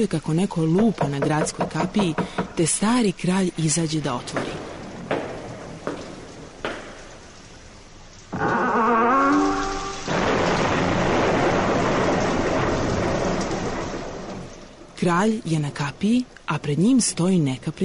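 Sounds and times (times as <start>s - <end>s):
speech: 0.0s - 4.7s, 15.0s - 17.8s
heavy rain: 4.1s - 17.3s
thunder: 9.7s - 14.6s.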